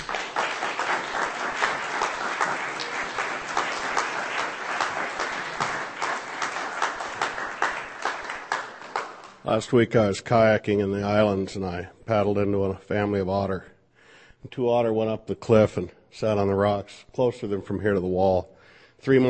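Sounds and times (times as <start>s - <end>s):
audience applause welcoming a performer to the stage at a reading: 0.0s - 9.4s
speech: 9.5s - 13.7s, 14.4s - 19.2s.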